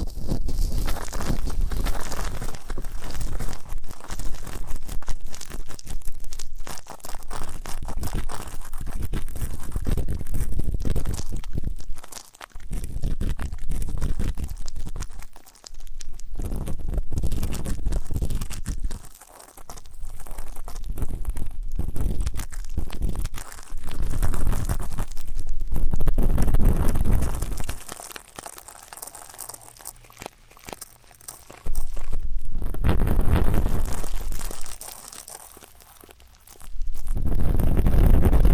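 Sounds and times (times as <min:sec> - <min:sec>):
ear-cleaning scratchy crunching and crinkling: 0:00.0 - 0:38.5.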